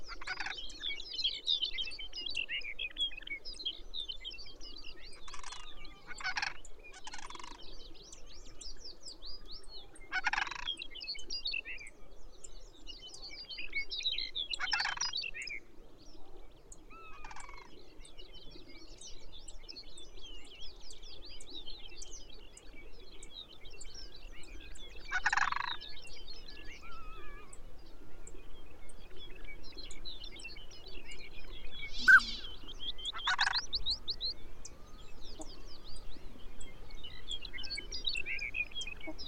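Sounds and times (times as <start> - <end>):
Arctic birds twittering: 0.0 - 39.2
harsh rattling calls, likely ptarmigan: 5.2 - 7.6, 10.1 - 10.8, 14.6 - 15.2, 25.0 - 25.9, 31.7 - 33.8.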